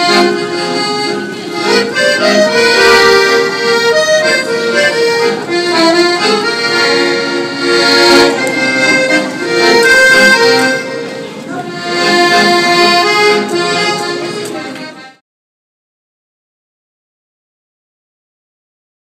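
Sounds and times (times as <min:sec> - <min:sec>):
accordion: 0:00.0 - 0:15.2.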